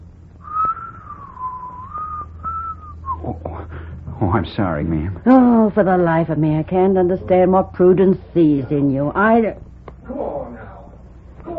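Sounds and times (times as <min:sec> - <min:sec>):
low hum: 0:00.0 - 0:11.5
person whistling a slow wavering melody: 0:00.4 - 0:03.4
speech: 0:04.2 - 0:09.6.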